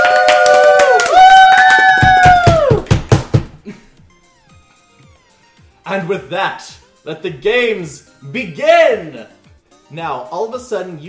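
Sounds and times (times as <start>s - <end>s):
audience applause: 0.0s - 3.2s
speech: 6.1s - 11.0s.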